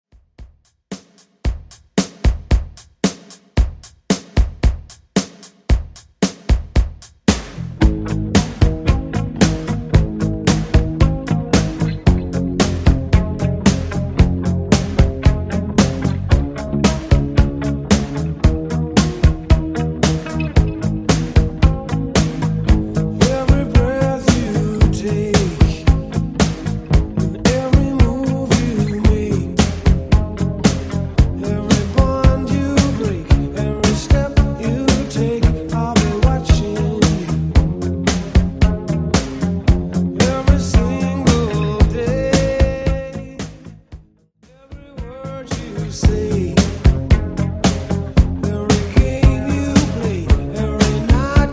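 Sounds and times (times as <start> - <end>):
1980s style redrum beat at 113 BPM: 0.2 - 51.5.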